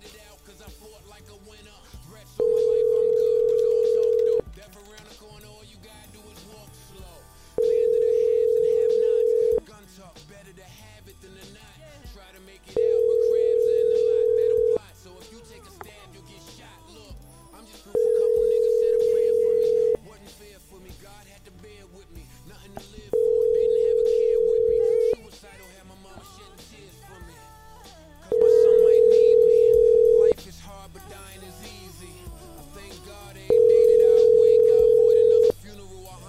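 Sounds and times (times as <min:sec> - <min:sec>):
telephone line tone while calling a number: 0:02.4 - 0:04.4, 0:07.6 - 0:09.6, 0:12.8 - 0:14.8, 0:18.0 - 0:20.0, 0:23.1 - 0:25.2, 0:28.3 - 0:30.4, 0:33.5 - 0:35.6.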